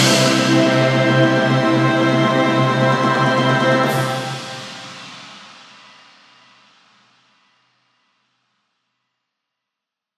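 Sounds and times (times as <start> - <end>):
choral vocal classical piece: 0.0 - 5.0.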